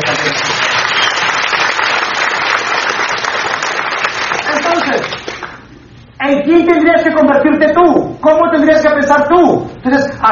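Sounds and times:
audience applause: 0.0s - 5.6s
speech: 6.4s - 10.3s.

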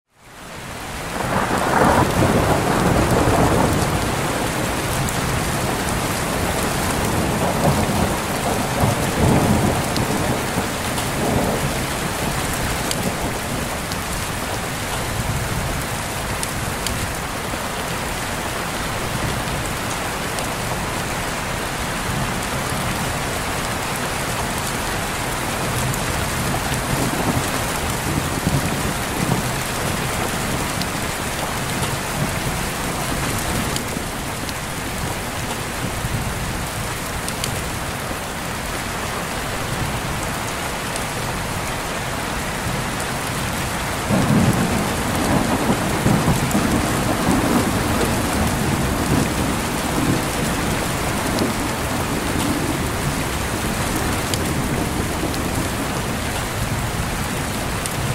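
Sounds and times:
gentle rain: 0.1s - 58.1s.

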